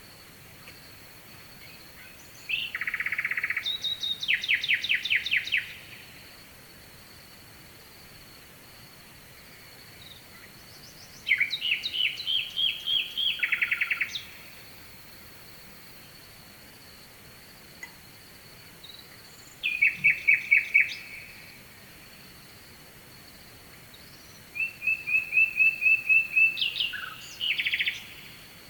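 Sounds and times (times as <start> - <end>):
nightingale song: 1.6 - 6.1, 10.0 - 14.5, 18.8 - 21.6, 23.9 - 28.6.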